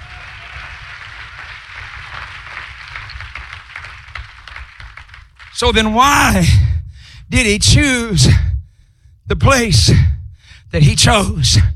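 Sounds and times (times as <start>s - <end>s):
audience clapping hands: 0.0s - 5.6s
speech: 5.6s - 6.6s, 7.3s - 8.5s, 9.3s - 10.1s, 10.7s - 11.7s.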